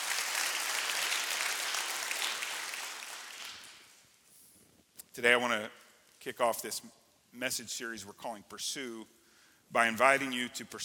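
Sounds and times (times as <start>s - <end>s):
audience hand clapping in praise: 0.0s - 4.0s
speech: 5.2s - 10.8s.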